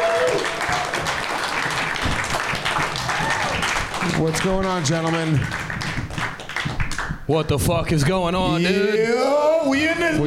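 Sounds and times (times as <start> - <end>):
crowd applauding: 0.0 - 7.2
speech: 4.2 - 5.7, 7.3 - 10.2.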